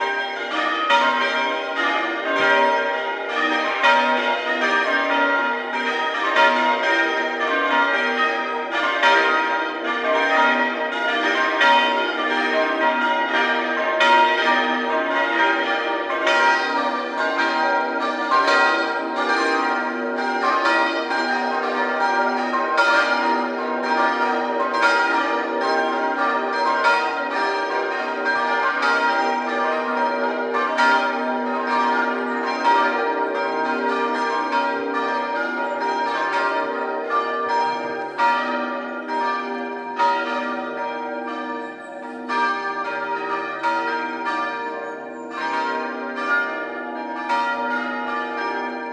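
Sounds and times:
church bell practice: 0.0 - 48.9.

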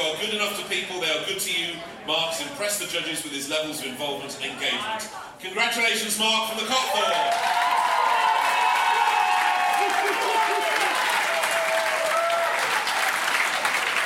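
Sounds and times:
speech: 0.1 - 7.8
whoops and cheers: 6.8 - 13.4
audience applause: 6.9 - 14.0.

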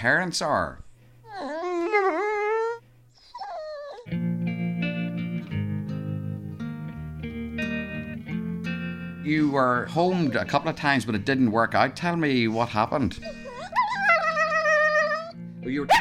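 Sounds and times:
speech: 0.0 - 0.8, 9.3 - 13.4, 15.6 - 15.9
dog whimpering and howling: 1.2 - 4.1, 13.2 - 15.9
music with sustained chords: 4.1 - 13.8.

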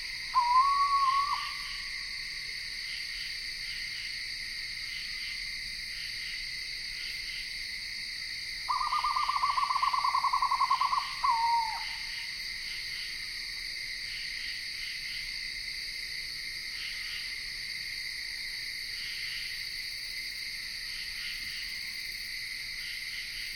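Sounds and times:
insects in Ithaca New York: 0.0 - 23.5
screech owl calling in Ithaca New York: 0.3 - 2.0, 8.7 - 12.2.

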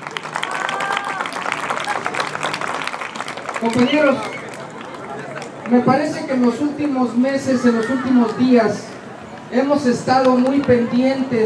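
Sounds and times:
audience applause welcoming a speaker: 0.0 - 5.8
speech: 3.6 - 4.4, 5.7 - 8.9, 9.5 - 11.4.

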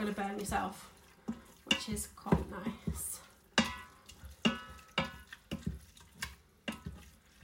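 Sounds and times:
liquid slopping around in the bottom of a pressure cooker pot: 0.0 - 7.4
speech: 0.1 - 0.9, 1.8 - 3.2.

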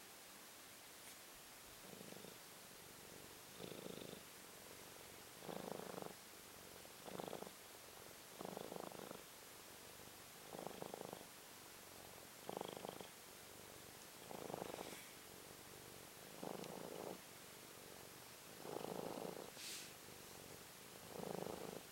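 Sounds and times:
cat purring: 1.8 - 21.9.

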